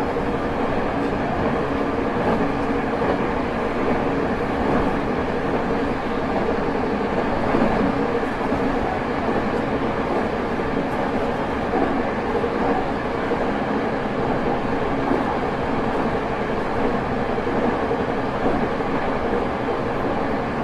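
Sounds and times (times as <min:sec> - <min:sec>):
E217 series Yokosuka Sobu Rapid train: 0:00.0 - 0:20.6.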